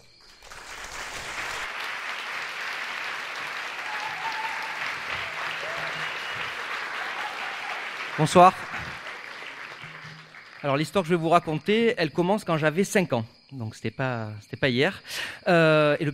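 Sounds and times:
audience applause: 0.3 - 11.4
speech: 8.2 - 8.7, 10.6 - 16.1.

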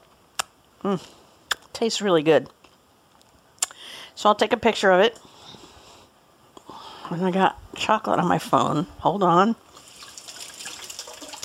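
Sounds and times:
speech: 0.8 - 1.2, 1.8 - 2.6, 4.2 - 5.3, 7.1 - 9.6
running tap water splashing over fingers being rinsed: 9.8 - 11.4.

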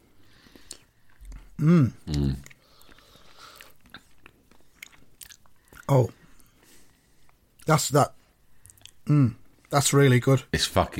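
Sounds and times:
lip smacking: 0.4 - 6.5, 8.6 - 9.1
wet mouth sounds tasting runny Ambrosia-style custard: 0.5 - 5.9
speech: 1.6 - 2.5, 5.9 - 6.2, 7.7 - 8.2, 9.1 - 10.9.

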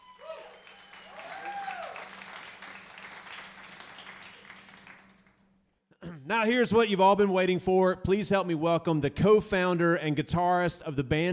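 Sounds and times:
audience applause for a live radio show's house band: 0.0 - 5.4
speech: 6.3 - 11.3.

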